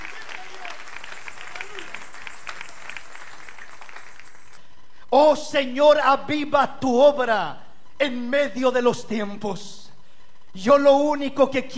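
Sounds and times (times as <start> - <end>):
audience clapping: 0.0 - 4.6
speech: 5.1 - 9.8, 10.6 - 11.7.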